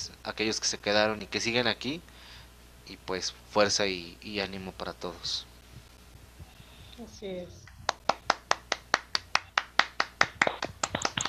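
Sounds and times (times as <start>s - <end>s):
speech: 0.3s - 2.1s, 2.9s - 5.5s, 7.0s - 7.6s
applause, hands clapping: 7.6s - 11.2s.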